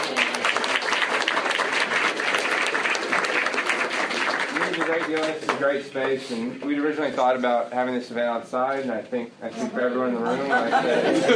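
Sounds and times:
audience applause: 0.0s - 5.6s
speech: 5.0s - 11.3s
laughter: 10.1s - 11.3s.

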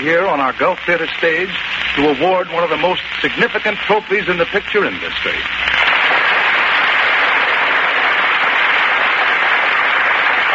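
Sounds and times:
speech: 0.0s - 5.8s
audience applause: 5.8s - 10.5s.

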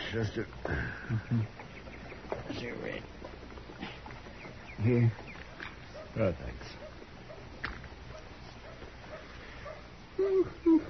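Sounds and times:
quiet hissy background: 0.0s - 10.8s
speech: 0.1s - 1.7s, 2.5s - 3.4s, 4.8s - 5.3s, 6.1s - 6.8s
dog whimpering: 10.2s - 10.8s.

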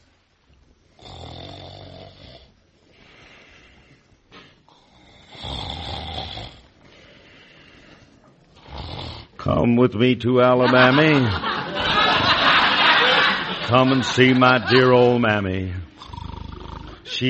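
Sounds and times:
person snoring heavily in deep sleep: 1.0s - 3.6s, 4.7s - 7.2s, 8.6s - 9.4s, 15.8s - 17.2s
speech: 9.5s - 11.5s, 13.7s - 15.8s
laughter: 10.3s - 15.8s.

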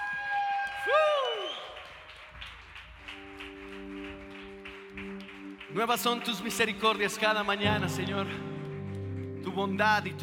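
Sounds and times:
audience applause: 0.0s - 10.2s
sustained organ-style chords: 3.2s - 10.2s
speech: 5.8s - 8.5s, 9.6s - 10.2s.

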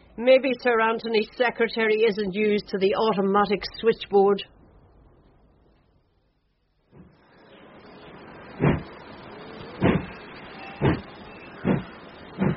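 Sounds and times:
speech: 0.2s - 4.6s
train passing: 7.2s - 12.5s.

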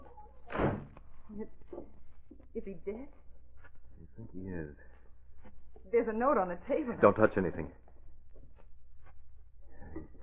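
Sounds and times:
door thumping shut: 0.5s - 1.0s
speech: 4.2s - 7.8s.

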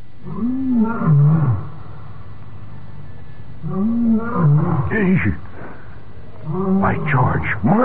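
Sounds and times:
lion roaring: 0.2s - 1.9s, 3.6s - 7.8s
speech: 0.4s - 1.6s, 4.5s - 5.4s.

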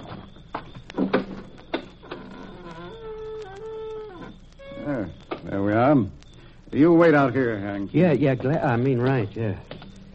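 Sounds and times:
gate creaking while being opened: 1.0s - 5.5s
speech: 6.8s - 9.7s.

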